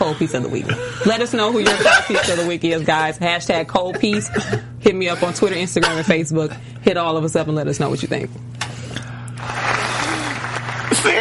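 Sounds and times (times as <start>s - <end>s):
speech: 0.1s - 8.7s, 11.0s - 11.1s
applause: 9.4s - 11.1s.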